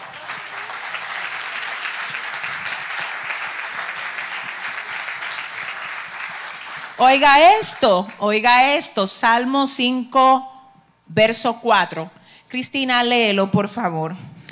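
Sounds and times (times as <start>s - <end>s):
audience applause: 0.0s - 8.2s
speech: 7.0s - 10.5s, 11.1s - 14.4s.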